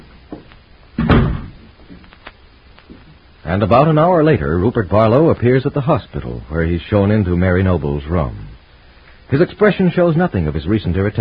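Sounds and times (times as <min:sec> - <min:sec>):
door opening and closing: 0:01.0 - 0:02.1
speech: 0:03.5 - 0:08.5, 0:09.3 - 0:11.1.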